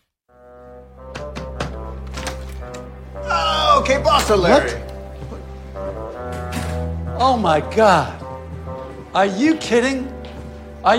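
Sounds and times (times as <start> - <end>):
knocking on a hotel room door: 1.1 - 1.9
speech: 3.8 - 4.8, 7.2 - 8.2, 9.2 - 10.2.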